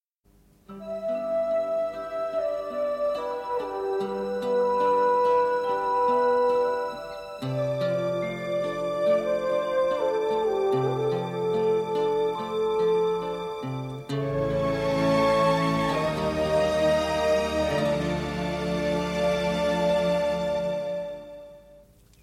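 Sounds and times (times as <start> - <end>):
instrumental music: 0.6 - 22.0.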